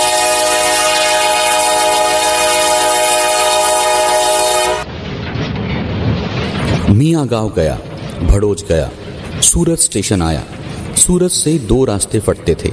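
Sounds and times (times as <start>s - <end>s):
train horn blaring: 0.0s - 4.9s
moving train rumbling and rattling: 0.0s - 12.7s
speech: 7.0s - 12.7s.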